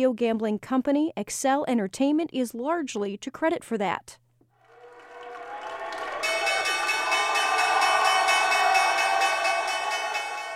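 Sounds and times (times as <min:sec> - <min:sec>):
speech: 0:00.0 - 0:04.2
opening bell ringing at the New York Stock Exchange: 0:05.9 - 0:10.5.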